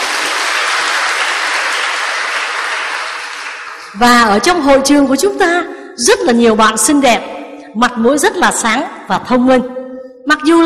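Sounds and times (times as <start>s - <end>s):
audience applause in a hall during a Buddhist monk's talk: 0.0s - 4.0s
speech: 4.0s - 10.6s.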